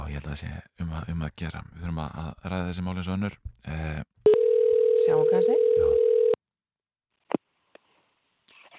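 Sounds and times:
speech: 0.2 - 4.2, 5.0 - 6.1
telephone dial tone while redialing a dropped call: 4.3 - 6.4.

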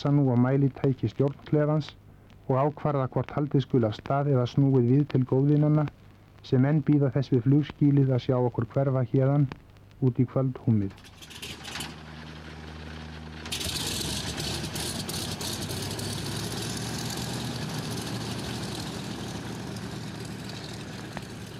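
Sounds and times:
speech: 0.0 - 11.6
aircraft engines roaring up for takeoff: 11.0 - 21.5.

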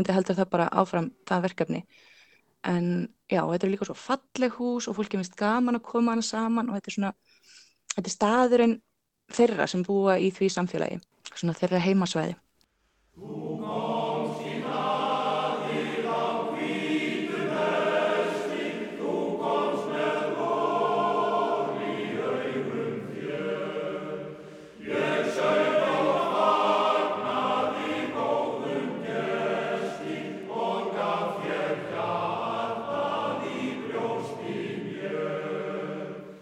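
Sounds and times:
speech: 0.0 - 12.4, 13.2 - 13.9
male voice choir singing: 13.2 - 36.3.

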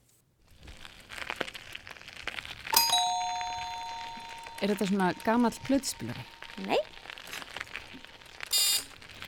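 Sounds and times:
bicycle wheels rolling on gravel: 0.5 - 2.7, 5.2 - 9.2
bicycle bell ringing: 2.8 - 6.8
speech: 4.6 - 7.0.

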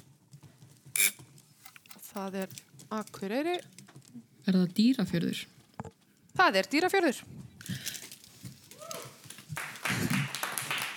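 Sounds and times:
speech: 2.2 - 3.8, 4.5 - 5.6, 6.4 - 7.4
audience clapping at a quiz show: 9.3 - 10.9.

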